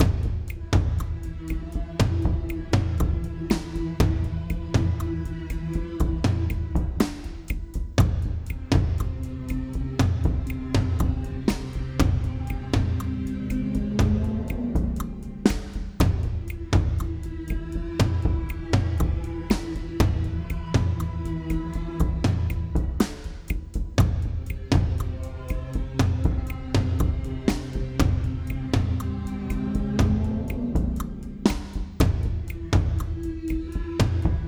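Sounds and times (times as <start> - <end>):
test drum beat: 0.0 - 34.4.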